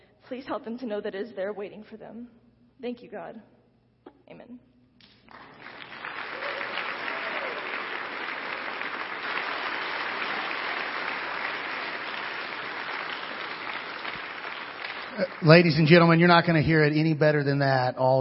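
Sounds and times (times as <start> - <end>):
speech: 0.3 - 3.6, 4.3 - 4.7, 15.2 - 18.1
sustained applause from a large audience: 5.3 - 17.2.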